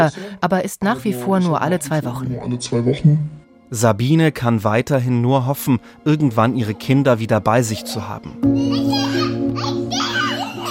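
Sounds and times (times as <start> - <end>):
speech: 0.0 - 8.9
children playing in old home videos from Syria: 7.9 - 10.6.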